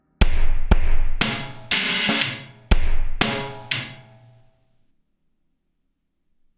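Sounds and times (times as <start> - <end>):
drums: 0.0 - 4.6.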